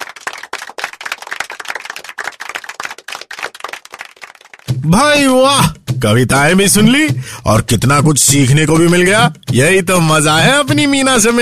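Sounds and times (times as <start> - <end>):
loud applause: 0.0 - 5.0
speech: 4.8 - 11.4.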